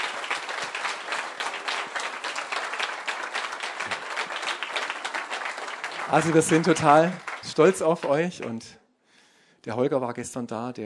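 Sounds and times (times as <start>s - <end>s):
audience applause: 0.0s - 8.7s
speech: 6.1s - 8.8s, 9.6s - 10.8s.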